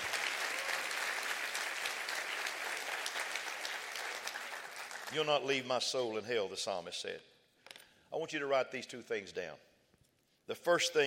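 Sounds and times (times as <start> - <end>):
audience clapping hands: 0.0 - 5.6
speech: 5.1 - 7.3, 8.1 - 9.7, 10.5 - 11.0.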